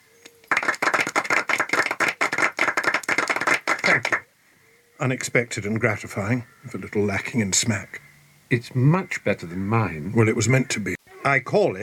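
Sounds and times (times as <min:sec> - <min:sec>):
audience clapping: 0:00.4 - 0:04.2
speech: 0:05.0 - 0:11.8.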